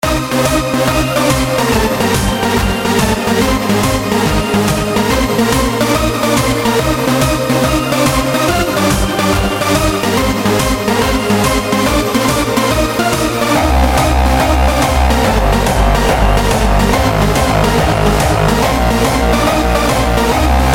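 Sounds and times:
hardstyle music: 0:00.0 - 0:20.7.

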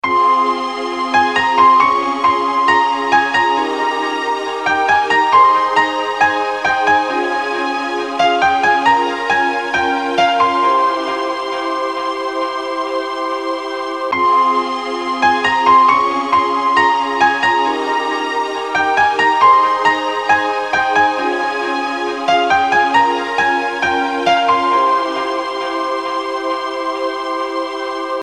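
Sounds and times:
relaxing piano music: 0:00.0 - 0:28.2.

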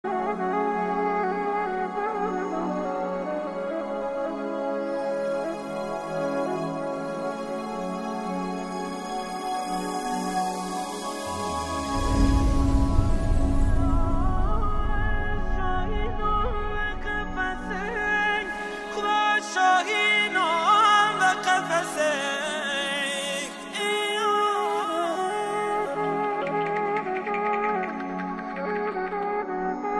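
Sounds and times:
music of Iran: 0:00.0 - 0:29.9.

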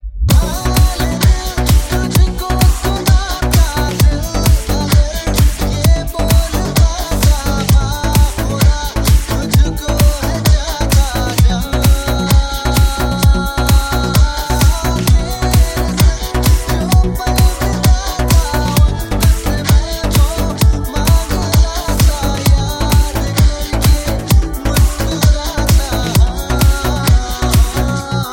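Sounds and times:
bass mix: 0:00.0 - 0:28.3.

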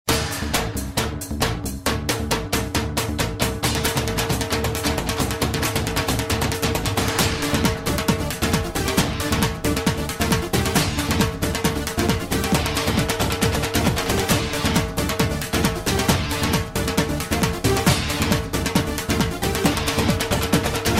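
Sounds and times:
bhangra instrumental music: 0:00.1 - 0:20.9.

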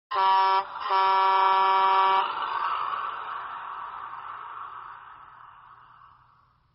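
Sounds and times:
truck horn: 0:00.1 - 0:03.0.

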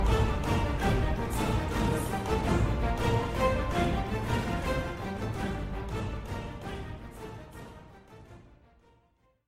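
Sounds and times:
fight music: 0:00.0 - 0:08.6.

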